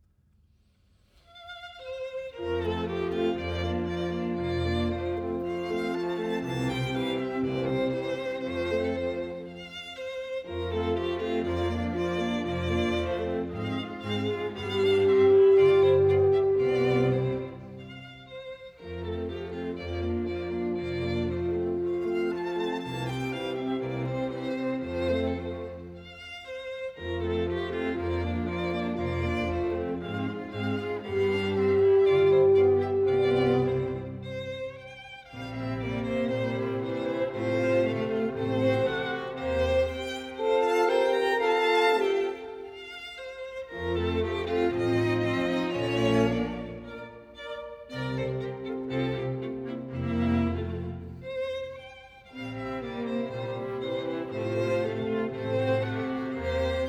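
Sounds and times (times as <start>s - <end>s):
classical divertimento andante grazioso in B flat major: 1.1s - 56.8s.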